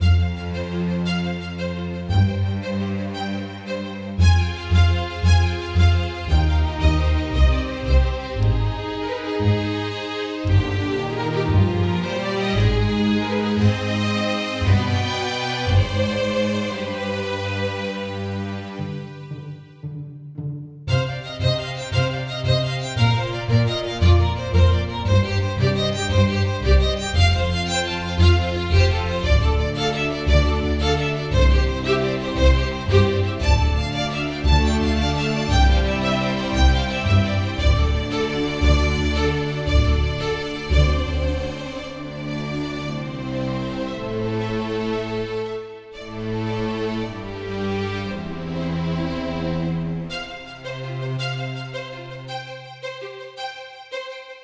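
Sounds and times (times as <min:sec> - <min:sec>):
bowed instrument music: 0:00.0 - 0:54.4.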